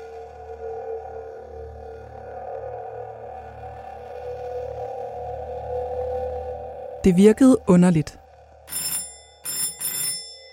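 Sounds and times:
speech: 7.0s - 8.8s
electric doorbell ringing: 8.7s - 10.5s.

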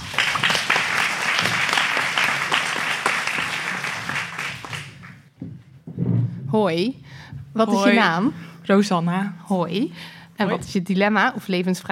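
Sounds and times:
audience applause: 0.0s - 5.3s
speech: 6.5s - 11.9s.

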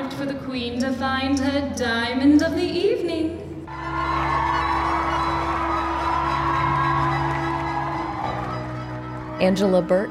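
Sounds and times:
speech: 0.2s - 4.6s, 9.4s - 10.0s
large crowd cheering and whooping: 3.7s - 10.0s.

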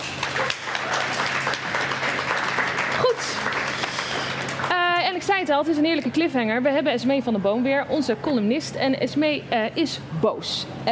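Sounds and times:
audience applause: 0.0s - 4.8s
speech: 5.4s - 10.9s.

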